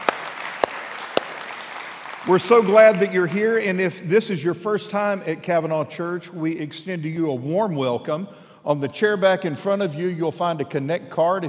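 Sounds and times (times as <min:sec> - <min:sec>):
audience clapping for graduates: 0:00.0 - 0:03.8
speech: 0:02.2 - 0:11.4.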